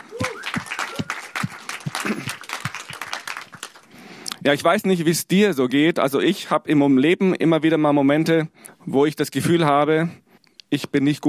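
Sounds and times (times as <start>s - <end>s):
applause: 0.0s - 4.1s
speech: 4.4s - 11.2s.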